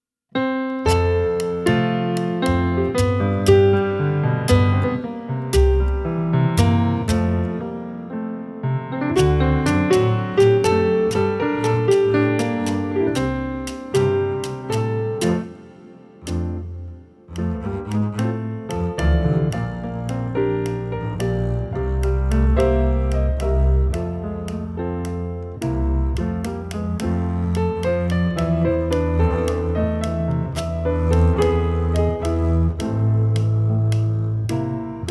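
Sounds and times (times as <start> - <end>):
musical trio: 0.4 - 35.1.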